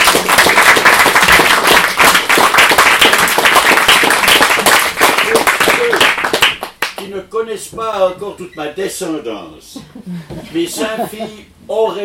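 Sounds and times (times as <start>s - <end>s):
audience applause: 0.0s - 6.9s
speech: 7.4s - 12.0s
laughter: 9.8s - 11.5s.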